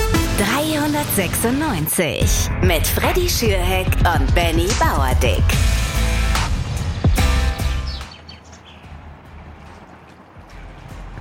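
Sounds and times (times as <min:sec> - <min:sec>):
speech: 0:00.4 - 0:05.8
birds chirping in Morsbach: 0:05.8 - 0:11.1.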